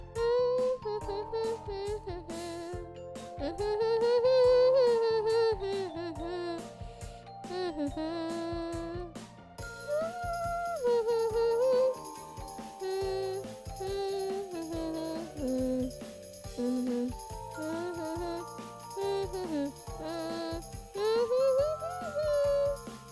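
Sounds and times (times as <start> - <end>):
person humming: 0.0 - 9.2, 9.8 - 23.1.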